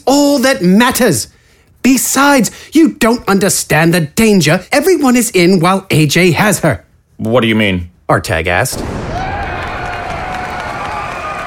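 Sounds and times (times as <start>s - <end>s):
speech: 0.0s - 9.1s
thunderous applause echoing through city: 9.0s - 11.4s.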